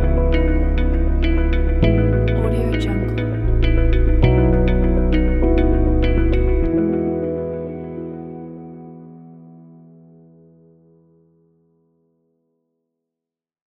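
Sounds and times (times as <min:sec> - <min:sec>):
corporate travel music: 0:00.0 - 0:10.3.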